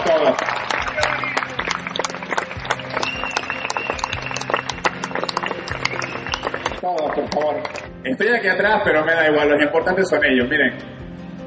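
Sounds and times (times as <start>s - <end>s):
audience applause: 0.0s - 7.9s
speech: 7.3s - 10.9s.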